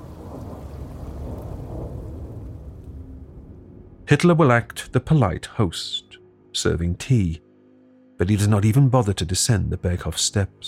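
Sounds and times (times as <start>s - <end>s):
thunder: 0.0s - 4.0s
rain: 0.0s - 4.9s
speech: 4.1s - 7.4s, 8.2s - 10.6s.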